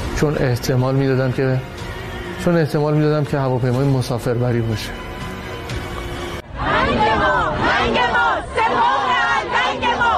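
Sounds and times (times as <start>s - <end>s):
speech: 0.2s - 5.0s
protest crowd chanting slogans against IRGC: 6.4s - 10.1s.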